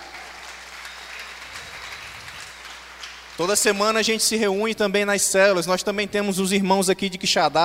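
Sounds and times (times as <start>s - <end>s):
audience applause: 0.0s - 4.0s
speech: 3.4s - 7.6s.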